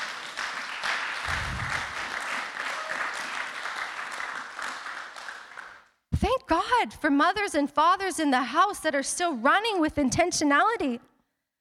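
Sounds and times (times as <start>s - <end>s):
audience clapping: 0.0s - 6.0s
speech: 6.5s - 11.1s.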